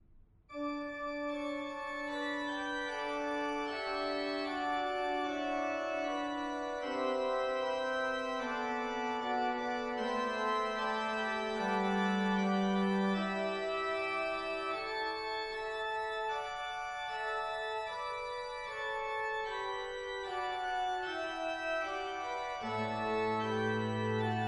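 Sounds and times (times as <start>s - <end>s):
musical prelude: 0.6s - 24.4s.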